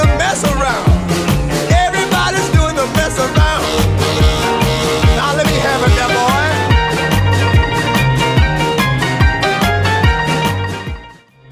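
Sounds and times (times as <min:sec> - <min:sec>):
1950s style drum beat: 0:00.0 - 0:10.4.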